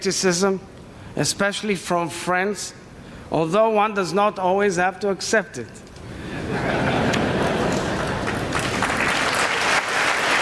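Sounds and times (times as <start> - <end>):
speech: 0.0 - 5.8
laughter: 6.2 - 8.6
applause in the House chamber: 7.6 - 10.3.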